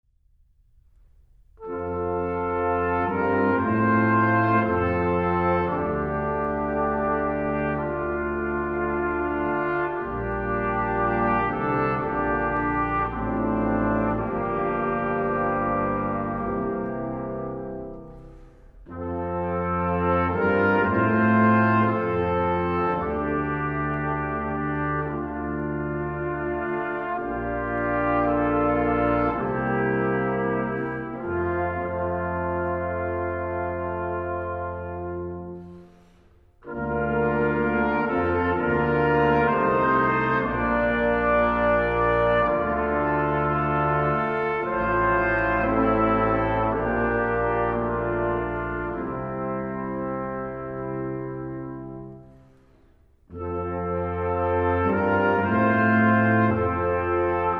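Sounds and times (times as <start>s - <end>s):
brass ensemble playing a Christmas carol: 1.6s - 57.5s.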